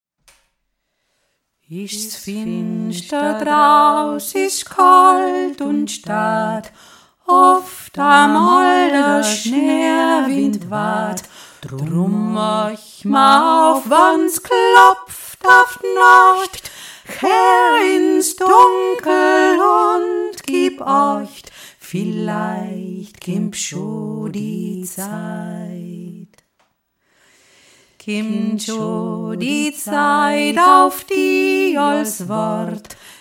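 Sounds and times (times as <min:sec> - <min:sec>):
Alpine Christmas folk song: 0:00.8 - 0:26.4, 0:27.0 - 0:33.1.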